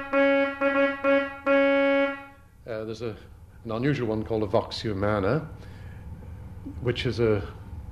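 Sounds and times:
trumpet reed stop on a pipe organ: 0.0s - 2.4s
speech: 2.9s - 5.8s, 6.6s - 7.6s.

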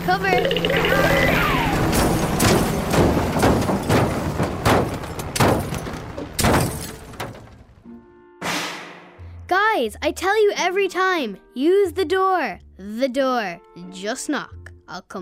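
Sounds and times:
speech: 0.1s - 1.2s, 9.8s - 15.2s
sharp bangs: 0.6s - 7.8s, 8.4s - 9.3s
debris clattering: 1.8s - 7.8s
glass shattering: 1.9s - 7.8s.

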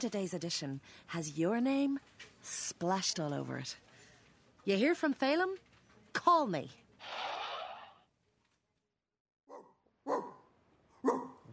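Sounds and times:
speech: 0.0s - 3.8s, 4.6s - 7.3s
dog barking: 9.5s - 11.5s.

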